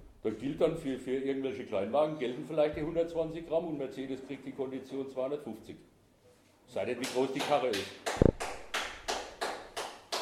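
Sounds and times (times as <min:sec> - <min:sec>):
speech: 0:00.2 - 0:05.9, 0:06.7 - 0:08.2
person clapping hands: 0:07.0 - 0:10.2.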